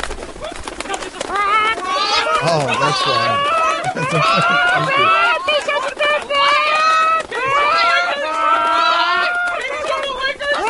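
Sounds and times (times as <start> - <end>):
laughter: 1.0 - 10.6
chicken sound effect: 1.3 - 5.5
speech: 2.5 - 5.4.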